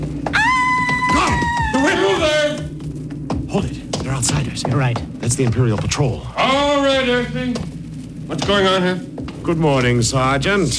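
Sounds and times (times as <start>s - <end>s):
woman screaming: 0.3s - 2.6s
low murmuring: 0.4s - 2.7s
speech: 3.6s - 10.7s.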